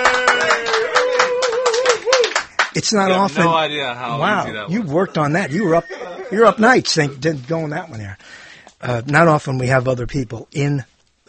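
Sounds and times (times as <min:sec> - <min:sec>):
drawn-out vocal cheer: 0:00.0 - 0:02.4
few people clapping in a radio studio: 0:00.0 - 0:03.2
speech: 0:02.8 - 0:10.9
laughter: 0:04.7 - 0:07.3.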